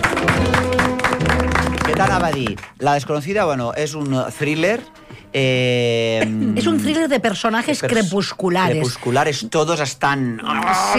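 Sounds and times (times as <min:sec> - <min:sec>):
audience clapping for a guest: 0:00.0 - 0:03.4
speech: 0:02.0 - 0:10.9.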